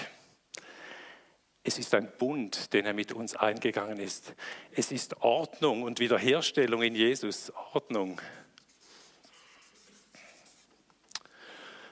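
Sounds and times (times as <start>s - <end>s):
speech: 1.7s - 8.4s
marker writing on a flipchart: 8.6s - 10.9s.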